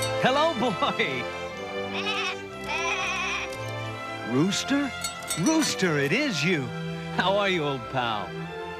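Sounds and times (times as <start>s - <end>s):
speech: 0.2s - 1.4s, 4.3s - 8.5s
sheep bleating: 1.8s - 3.6s.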